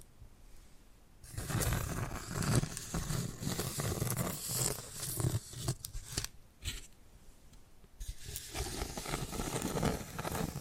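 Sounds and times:
dense rough rustling scrape: 1.3 - 6.9, 8.0 - 10.6.

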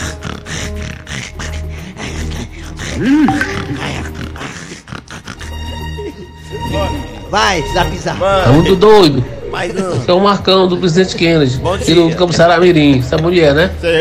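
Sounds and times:
voice imitating snoring: 0.0 - 5.9
speech: 3.0 - 3.9, 7.3 - 13.9.

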